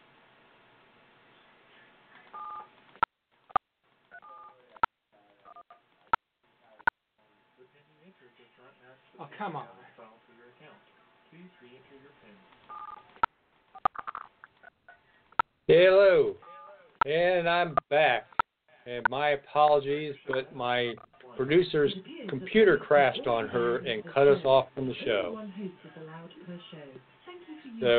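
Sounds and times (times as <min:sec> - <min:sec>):
speech: 0:08.8 - 0:09.8, 0:11.3 - 0:13.3, 0:15.7 - 0:27.9
telephone keypad tones entering PIN digits: 0:12.7 - 0:13.0.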